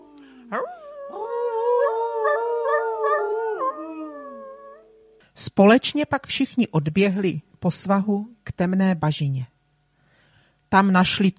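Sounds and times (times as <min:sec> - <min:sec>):
wolves howling, short and long howls: 0:00.0 - 0:04.9
speech: 0:00.5 - 0:01.6, 0:05.4 - 0:09.5, 0:10.7 - 0:11.3.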